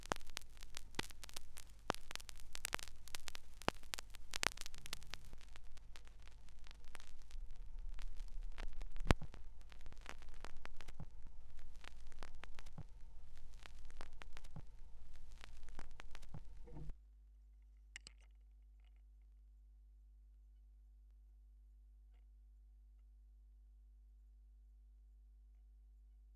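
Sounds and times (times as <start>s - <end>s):
vinyl record noise: 0.0s - 16.9s.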